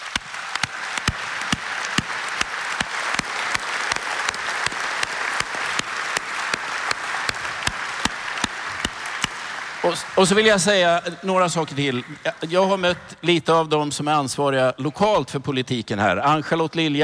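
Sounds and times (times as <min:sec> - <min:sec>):
warm audience applause from a large audience: 0:00.0 - 0:11.1
speech: 0:09.9 - 0:17.0.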